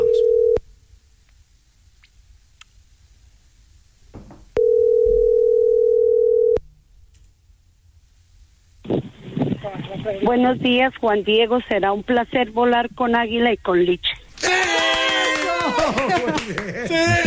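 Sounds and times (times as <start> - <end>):
telephone dial tone during call transfer: 0.0 - 0.6, 4.6 - 6.6
faint rustling: 8.1 - 12.4
speech: 10.1 - 14.6, 15.8 - 17.2
laughter: 14.4 - 17.2.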